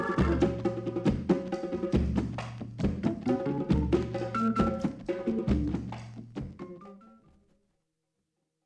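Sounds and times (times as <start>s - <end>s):
drum: 0.2s - 6.6s.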